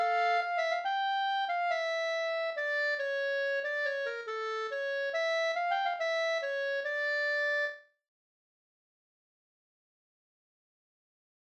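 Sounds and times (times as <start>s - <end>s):
bridal waltz music: 0.0s - 7.7s.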